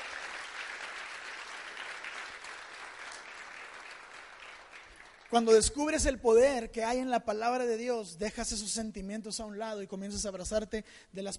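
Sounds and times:
audience applause: 0.0 - 5.6
speech: 5.3 - 11.3.

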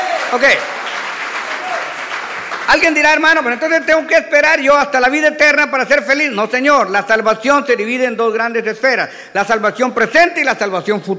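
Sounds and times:
applause: 0.0 - 3.8
speech: 0.3 - 0.8, 2.7 - 11.1.

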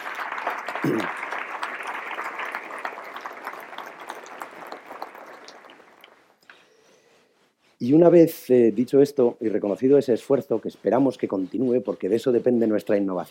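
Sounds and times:
audience applause: 0.0 - 6.2
speech: 0.8 - 1.2, 7.8 - 13.2.

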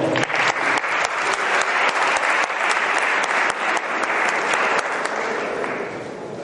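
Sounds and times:
audience applause: 0.0 - 6.2.

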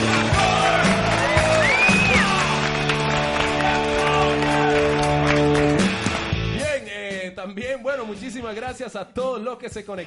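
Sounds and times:
applause: 0.0 - 6.4
speech: 7.9 - 10.0.

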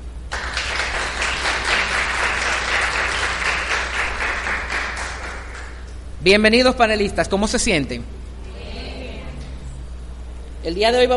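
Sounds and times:
welcoming applause: 0.3 - 5.8
speech: 6.2 - 8.2, 10.6 - 11.1.

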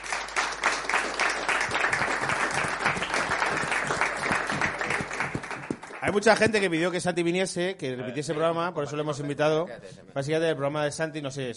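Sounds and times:
audience applause: 0.0 - 6.5
speech: 6.1 - 11.5.

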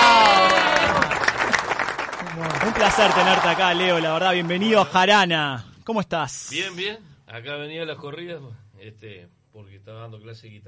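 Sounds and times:
group of people clapping: 0.0 - 5.1
speech: 2.8 - 10.6.

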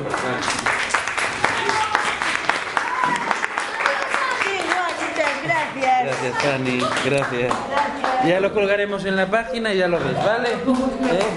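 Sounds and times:
applause: 0.0 - 8.3, 10.7 - 11.3
speech: 6.4 - 11.3
laughter: 10.0 - 11.3.

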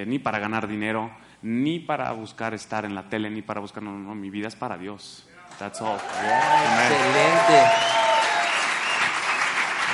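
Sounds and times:
speech: 0.0 - 8.0
audience applause: 5.8 - 9.9.

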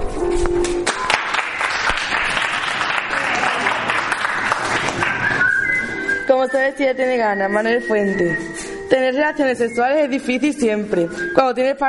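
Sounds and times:
audience applause: 0.8 - 5.5
shrill whistles: 5.0 - 8.6, 11.1 - 11.4
speech: 6.4 - 11.8.

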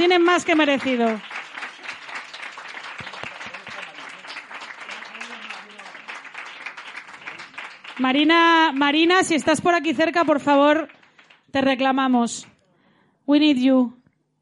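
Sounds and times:
audience applause: 0.0 - 9.4, 10.0 - 11.4
speech: 0.1 - 1.3, 8.0 - 12.5, 13.3 - 14.0.

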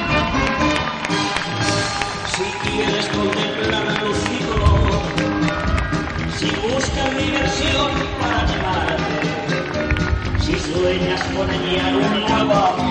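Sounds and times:
crowd applauding after a fireworks display: 0.0 - 12.9.

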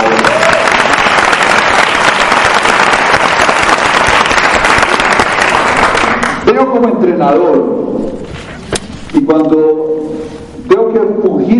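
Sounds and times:
crowd applauding: 0.0 - 6.4
speech: 6.8 - 8.3, 9.1 - 11.5.

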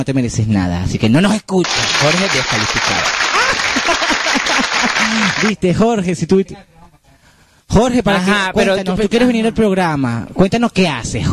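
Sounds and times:
speech: 0.0 - 6.7, 7.7 - 11.3
applause: 1.6 - 5.6
laughter: 1.7 - 5.6.

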